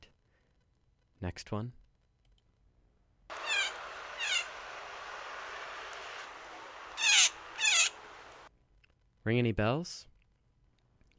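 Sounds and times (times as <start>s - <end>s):
speech: 1.2s - 1.8s, 9.2s - 10.1s
blue jay calling: 3.3s - 5.0s, 6.2s - 8.5s
steady low hiss: 3.3s - 8.5s.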